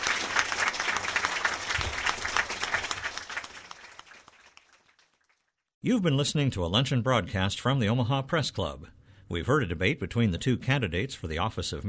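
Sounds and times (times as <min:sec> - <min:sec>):
audience applause: 0:00.0 - 0:05.5
speech: 0:05.8 - 0:11.8.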